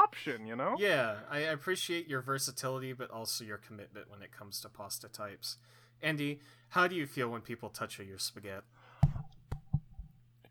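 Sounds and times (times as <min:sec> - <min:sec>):
speech: 0:00.1 - 0:08.8
microphone being knocked by accident: 0:09.0 - 0:10.2.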